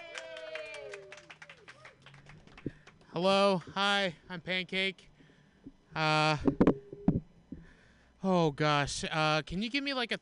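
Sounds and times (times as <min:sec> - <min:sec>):
small group clapping hands: 0:00.0 - 0:03.7
speech: 0:03.1 - 0:05.1, 0:06.0 - 0:06.6, 0:08.2 - 0:10.1.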